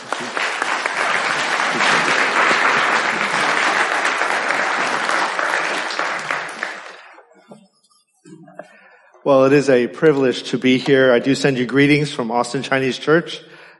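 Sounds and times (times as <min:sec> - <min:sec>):
church congregation clapping to welcome guest speakers: 0:00.0 - 0:07.6
speech: 0:09.3 - 0:13.7.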